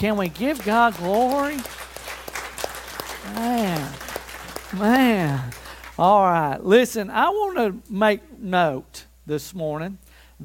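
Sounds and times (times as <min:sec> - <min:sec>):
speech: 0:00.0 - 0:01.8, 0:03.3 - 0:04.0, 0:04.7 - 0:10.4
audience clapping: 0:00.0 - 0:06.4.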